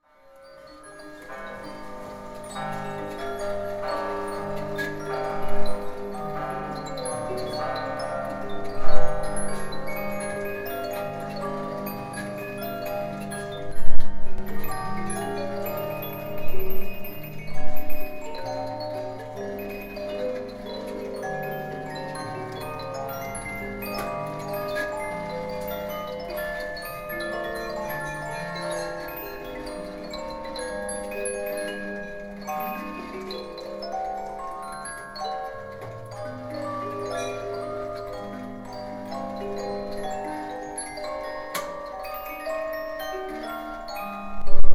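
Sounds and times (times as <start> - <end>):
jukebox music: 0.5 - 44.6.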